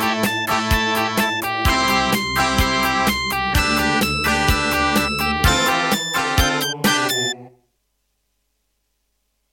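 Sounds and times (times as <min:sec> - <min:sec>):
Terratec WaveSystem synthesizer waveform tone: 0:00.0 - 0:07.5.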